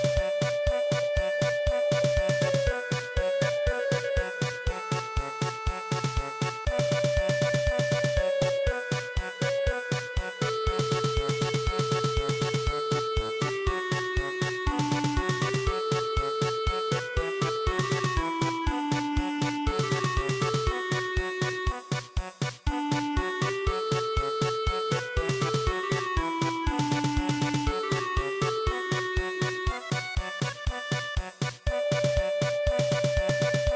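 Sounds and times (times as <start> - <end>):
traditional German polka music: 0.0 - 33.7.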